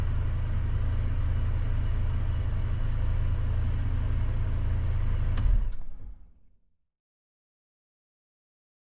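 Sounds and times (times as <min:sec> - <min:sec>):
Dodge Ram truck engine slow driving and idling: 0:00.0 - 0:06.6.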